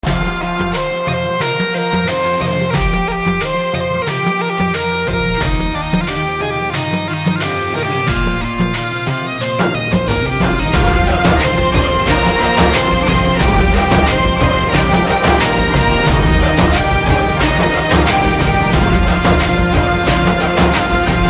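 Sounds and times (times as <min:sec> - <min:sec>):
instrumental ringtone: 0:00.0 - 0:21.2.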